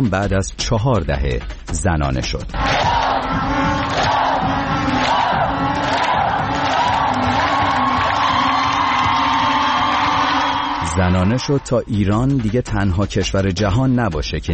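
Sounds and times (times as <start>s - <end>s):
speech: 0.0s - 4.1s, 11.0s - 14.5s
stadium crowd cheering at Azadi Stadium in Tehran: 2.5s - 12.0s.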